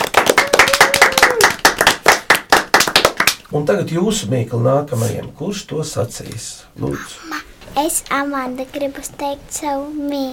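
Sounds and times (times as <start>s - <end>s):
applause: 0.0s - 3.4s
speech: 3.5s - 10.3s.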